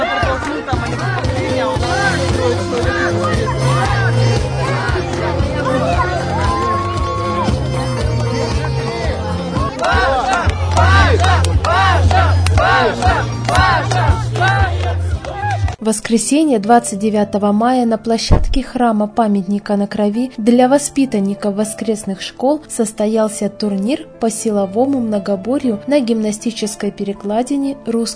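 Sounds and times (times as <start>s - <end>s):
fans cheering at outdoor sports ground: 0.0s - 15.8s
speech: 15.9s - 28.1s.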